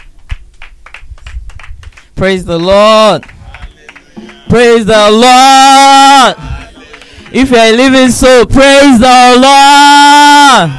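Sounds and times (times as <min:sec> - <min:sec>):
crowd applauding: 0:00.0 - 0:05.3, 0:05.9 - 0:08.2
speech: 0:02.2 - 0:03.3, 0:04.5 - 0:06.5, 0:07.3 - 0:10.7.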